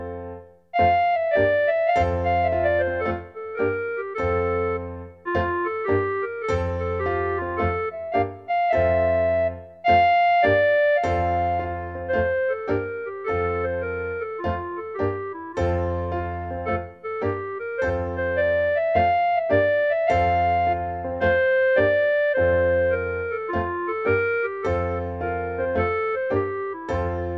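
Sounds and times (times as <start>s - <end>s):
clarinet: 0.8s - 27.3s.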